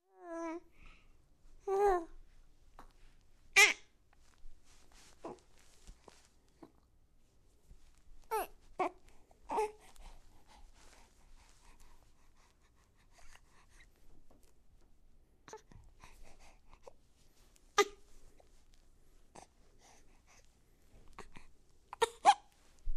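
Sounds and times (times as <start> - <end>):
newborn baby trying to talk: 0.1 - 0.7, 1.6 - 2.2, 3.6 - 3.9, 8.3 - 9.9, 17.8 - 18.0, 21.2 - 22.5.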